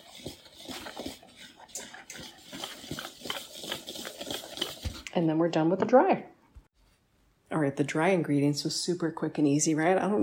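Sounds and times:
whisk stirring flour, almond flour, rice flour and spices in a medium bowl: 0:00.0 - 0:05.2
speech: 0:05.2 - 0:06.3, 0:07.6 - 0:10.2.

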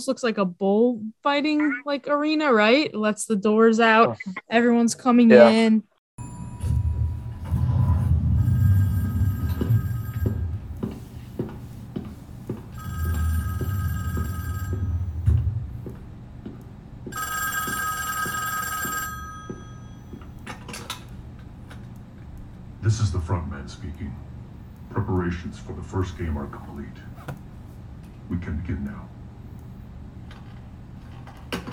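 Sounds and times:
speech: 0:00.0 - 0:05.9, 0:25.0 - 0:27.4, 0:28.3 - 0:29.2
steady low rumble: 0:06.2 - 0:10.8, 0:14.8 - 0:16.4
telephone ringing: 0:06.2 - 0:11.0, 0:12.7 - 0:15.5, 0:17.1 - 0:20.6.

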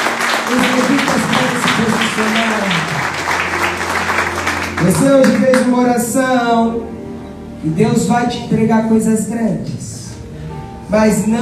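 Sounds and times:
audience applauding loudly: 0:00.0 - 0:05.8
speech: 0:00.5 - 0:01.2, 0:04.8 - 0:07.0, 0:07.6 - 0:10.0, 0:10.9 - 0:11.4.

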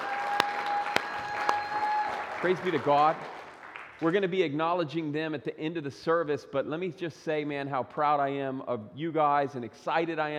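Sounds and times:
audience applause: 0:00.0 - 0:04.0
speech: 0:02.4 - 0:03.4, 0:04.0 - 0:10.3.

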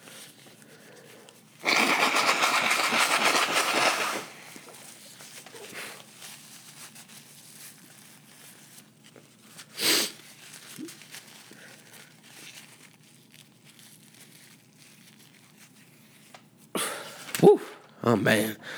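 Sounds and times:
person blowing their nose: 0:01.6 - 0:04.8, 0:05.5 - 0:06.0, 0:09.7 - 0:10.9, 0:16.8 - 0:17.8
speech: 0:18.1 - 0:18.6.

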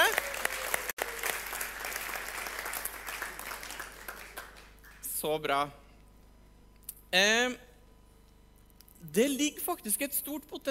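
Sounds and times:
audience applauding: 0:00.0 - 0:05.1
speech: 0:05.2 - 0:05.8, 0:07.1 - 0:07.7, 0:09.0 - 0:10.6.

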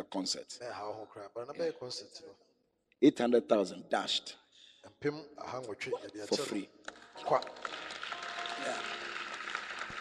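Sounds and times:
speech: 0:00.0 - 0:08.0
audience clapping: 0:06.8 - 0:09.9.

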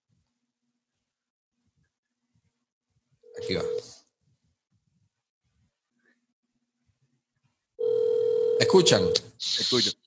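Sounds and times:
ringback tone of an outgoing phone call: 0:03.3 - 0:04.0, 0:07.8 - 0:09.2
speech: 0:03.4 - 0:03.8, 0:08.6 - 0:10.0.

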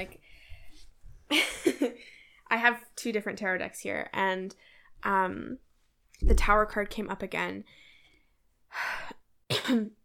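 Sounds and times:
speech: 0:00.0 - 0:00.2, 0:01.3 - 0:01.6, 0:02.5 - 0:05.6, 0:06.2 - 0:07.8, 0:08.7 - 0:09.1, 0:09.7 - 0:10.0
person coughing into the microphone: 0:09.5 - 0:10.0.

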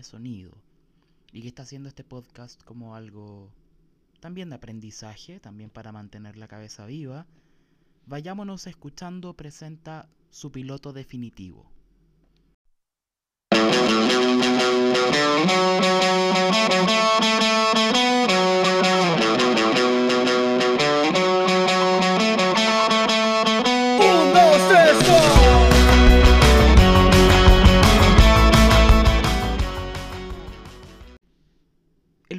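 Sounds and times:
speech: 0:00.0 - 0:00.7, 0:01.3 - 0:03.6, 0:04.2 - 0:07.4, 0:08.0 - 0:11.7, 0:14.4 - 0:17.3
song excerpt used as show theme: 0:13.5 - 0:31.2.

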